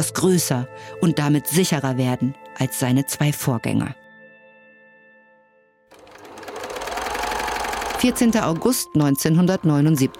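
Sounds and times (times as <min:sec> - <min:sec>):
speech: 0:00.0 - 0:04.0, 0:08.0 - 0:10.1
old sewing machine stitching fabric: 0:05.9 - 0:10.1.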